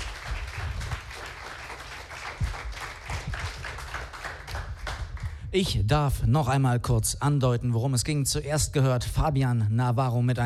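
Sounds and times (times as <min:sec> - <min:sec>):
crowd applause: 0:00.0 - 0:05.4
speech: 0:05.5 - 0:10.4.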